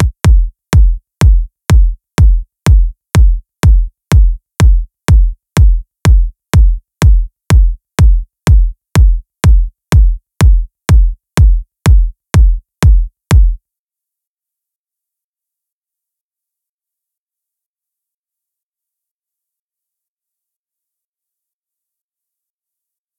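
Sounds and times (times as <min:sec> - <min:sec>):
future house kick drum: 0:00.0 - 0:13.6.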